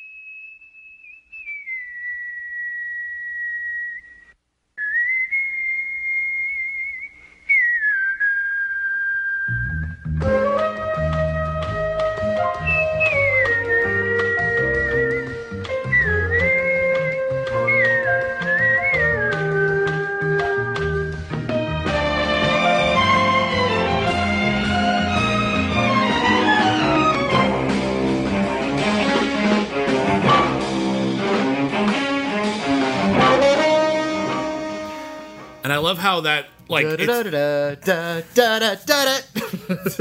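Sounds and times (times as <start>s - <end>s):
lone whistled TV theme melody of long sliding notes: 0.0s - 27.8s, 30.2s - 30.9s, 33.0s - 35.6s
full instrumental band playing TV theme tune: 19.3s - 36.1s
speech: 35.9s - 39.9s
laughter: 39.3s - 39.9s.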